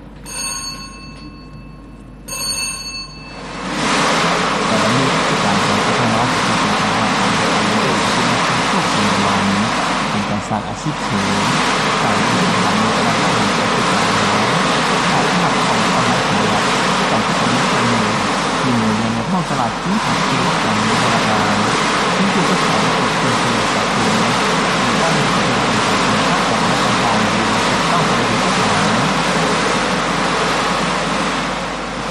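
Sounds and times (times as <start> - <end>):
short ringing tone: 0.0 - 3.6
lottery draw drums spinning at a Thai national lottery: 3.1 - 32.0.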